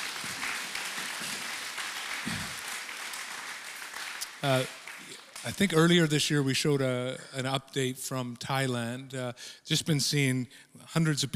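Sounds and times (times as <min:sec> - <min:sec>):
audience clapping: 0:00.0 - 0:06.2
speech: 0:04.4 - 0:04.8, 0:05.4 - 0:11.3.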